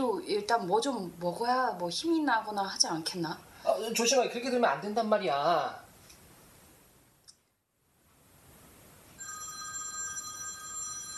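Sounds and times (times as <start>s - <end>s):
speech: 0.3s - 5.8s
telephone ringing: 9.2s - 11.1s.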